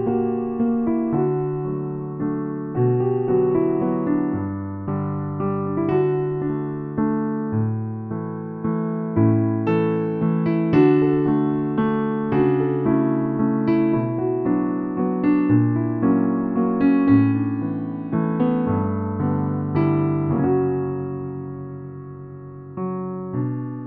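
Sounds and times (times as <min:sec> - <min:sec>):
piano sketch: 0:00.0 - 0:23.8.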